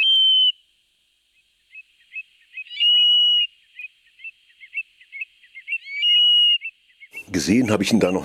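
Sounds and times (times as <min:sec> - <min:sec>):
Eurasian stone-curlew calling at night: 0:00.0 - 0:08.2
speech: 0:07.4 - 0:08.2.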